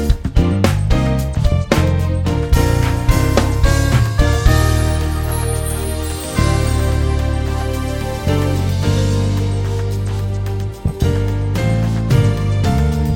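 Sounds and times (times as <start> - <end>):
instrumental accompaniment: 0.0 - 13.1.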